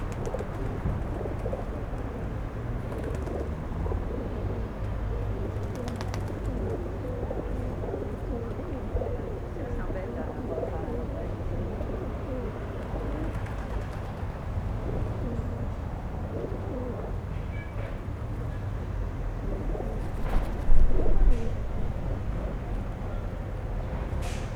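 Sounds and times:
pigeons cooing: 0.0s - 17.3s, 18.4s - 24.5s.

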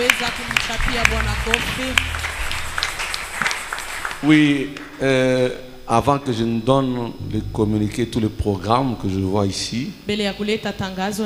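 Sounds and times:
speech: 0.0s - 2.2s, 4.2s - 11.2s
raised voices cheering: 0.0s - 3.2s
church congregation clapping in praise: 0.0s - 5.0s.

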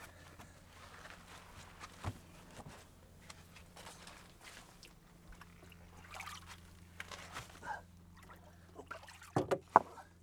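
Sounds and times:
wet goat skins soaking for a bombo drum sloshing in water: 1.2s - 9.7s.

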